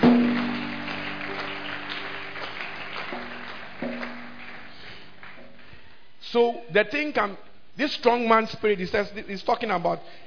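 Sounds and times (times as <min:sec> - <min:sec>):
audience clapping: 0:00.0 - 0:05.9
speech: 0:06.3 - 0:10.2.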